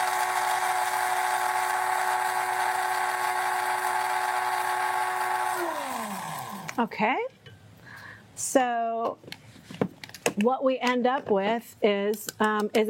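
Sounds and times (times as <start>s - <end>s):
electric coffee grinder grinding seeds into powder: 0.0s - 6.8s
speech: 6.8s - 7.3s, 8.4s - 9.4s, 10.4s - 12.8s.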